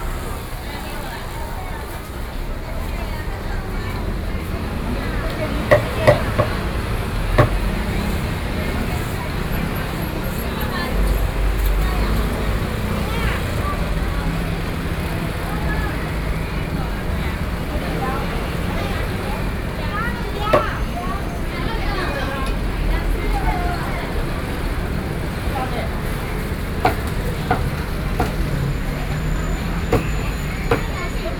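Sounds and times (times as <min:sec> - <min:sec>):
traditional market ambience in Taiwan: 0:00.0 - 0:31.3.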